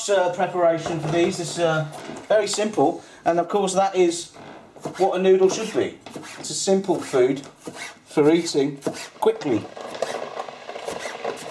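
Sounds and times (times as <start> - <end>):
speech: 0.0 - 10.2
knife finely chopping scallions on board: 6.1 - 8.0, 8.8 - 9.1.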